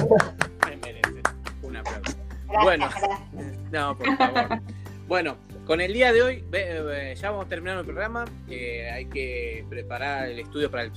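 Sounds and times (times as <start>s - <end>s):
audience applause: 0.0s - 1.8s
laughter: 0.0s - 3.0s, 3.8s - 4.7s
speech: 0.1s - 0.4s, 2.5s - 10.9s.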